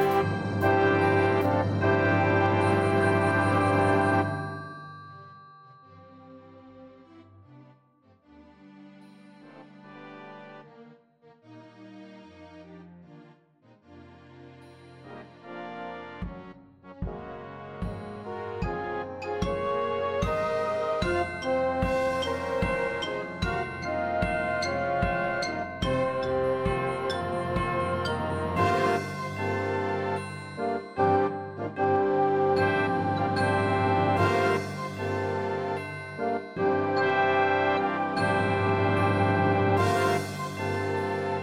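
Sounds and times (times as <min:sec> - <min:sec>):
tekiah fanfare: 0:00.0 - 0:05.0, 0:17.2 - 0:41.4.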